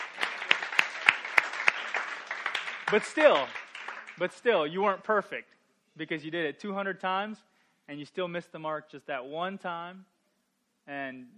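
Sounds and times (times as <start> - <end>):
audience applause: 0.0 - 4.4
speech: 2.9 - 3.6, 4.2 - 10.1, 10.9 - 11.3.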